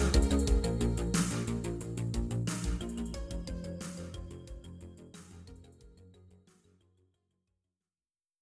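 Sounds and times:
chill synthwave music: 0:00.0 - 0:06.3.

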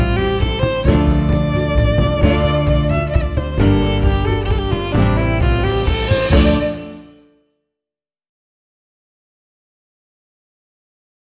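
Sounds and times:
violin melody: 0:00.0 - 0:07.3.

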